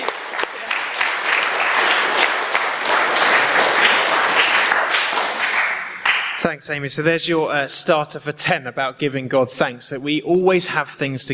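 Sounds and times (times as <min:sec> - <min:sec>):
audience applause: 0:00.0 - 0:06.4
speech: 0:06.4 - 0:11.3.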